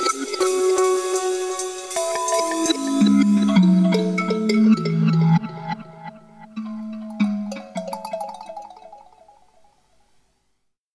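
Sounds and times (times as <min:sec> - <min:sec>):
Roland TR 8S drum machine pattern: 0:00.0 - 0:08.1.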